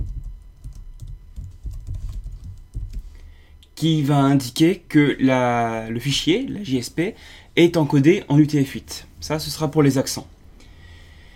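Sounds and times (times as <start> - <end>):
typing JSP web page code on a computer keyboard: 0.0 - 3.1
speech: 3.8 - 10.4.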